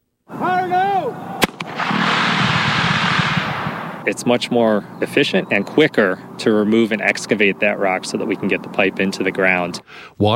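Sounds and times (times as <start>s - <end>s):
dynamite blast breaking up rock: 1.3s - 4.2s
speech: 4.1s - 10.3s.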